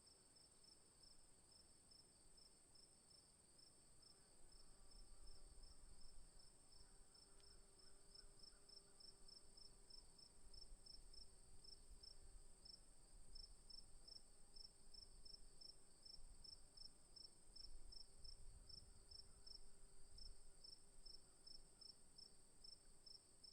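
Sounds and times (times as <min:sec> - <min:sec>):
afternoon crickets chirping: 0:00.1 - 0:23.4.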